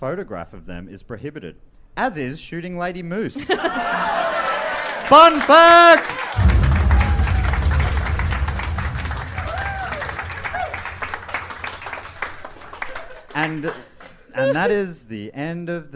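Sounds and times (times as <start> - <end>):
speech: 0.0 - 4.4, 5.1 - 6.5, 13.4 - 15.9
laughter: 3.4 - 4.9
audience applause: 3.8 - 14.1.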